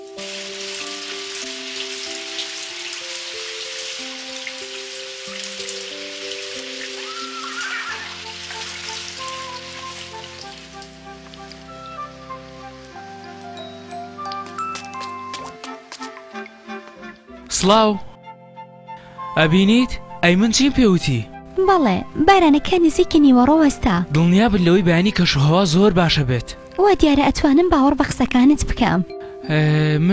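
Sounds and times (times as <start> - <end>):
rain falling: 0.0 - 17.2
slow melody of sustained musical tones: 0.0 - 30.1
speech: 17.6 - 18.1, 19.4 - 30.1.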